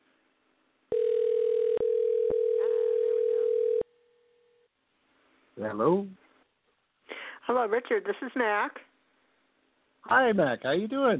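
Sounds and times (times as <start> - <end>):
telephone dialing tone: 0.9 - 3.9
speech: 5.6 - 6.2, 7.5 - 8.9, 10.0 - 11.1.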